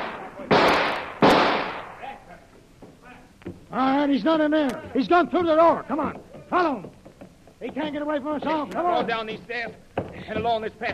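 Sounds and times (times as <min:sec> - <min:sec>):
loud sharp blasts: 0:00.0 - 0:02.2
speech: 0:03.7 - 0:07.0, 0:07.6 - 0:10.9.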